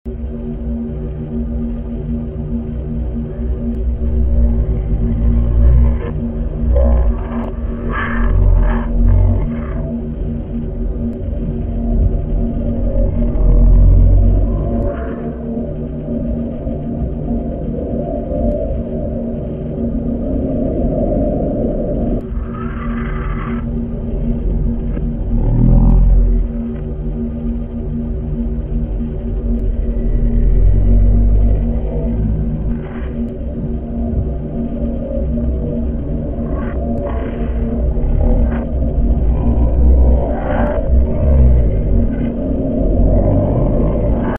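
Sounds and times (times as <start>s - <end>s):
ambience: 0.0s - 44.3s.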